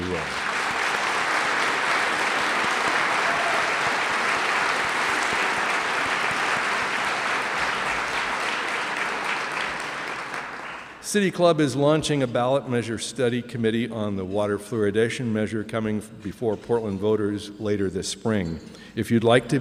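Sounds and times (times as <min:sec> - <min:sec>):
large audience applause: 0:00.0 - 0:11.0
speech: 0:11.1 - 0:19.5.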